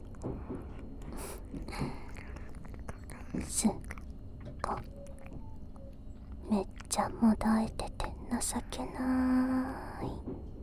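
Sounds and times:
wet mouth sounds of biting and nibbling on a neck: 0.0 - 7.1
mouth clicks and smacks: 0.0 - 8.7
speech: 3.4 - 3.9, 6.5 - 10.2.

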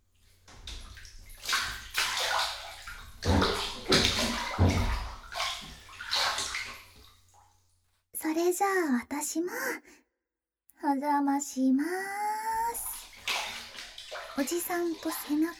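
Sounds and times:
water sloshing and splashing in a bathtub as someone climbs in: 0.0 - 7.9, 12.2 - 15.5
speech: 8.6 - 10.0, 10.8 - 12.4, 14.4 - 15.5.

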